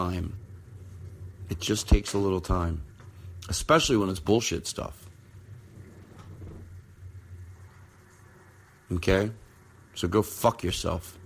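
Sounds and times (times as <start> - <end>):
thunder rumbling outside: 0.0 - 8.9
speech: 0.1 - 0.4, 1.5 - 5.0, 8.9 - 9.4, 10.0 - 11.2.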